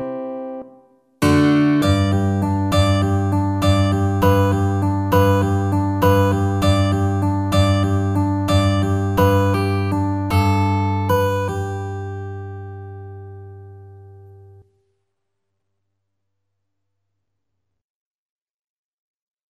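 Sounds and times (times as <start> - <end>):
acoustic guitar: 0.0 - 14.7.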